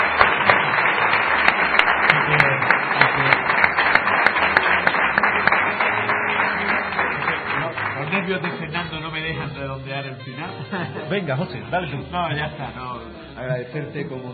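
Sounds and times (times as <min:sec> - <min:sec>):
audience applause: 0:00.0 - 0:10.4
speech: 0:10.2 - 0:14.3.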